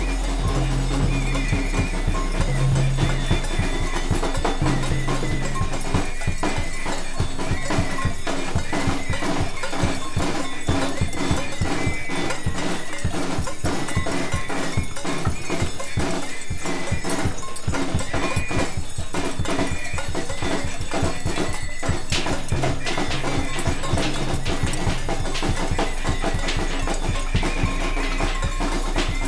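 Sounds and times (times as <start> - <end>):
special burn-in noise: 0.0 - 29.2.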